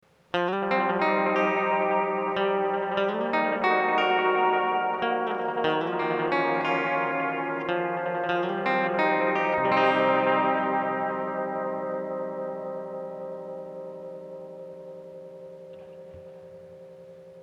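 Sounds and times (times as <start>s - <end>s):
electric guitar through Binson Echorec: 0.3s - 17.4s.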